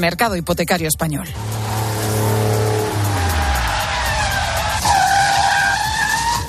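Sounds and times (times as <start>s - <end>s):
speech: 0.0s - 1.8s
tires skidding: 1.3s - 6.4s
car braking hard: 1.4s - 6.4s.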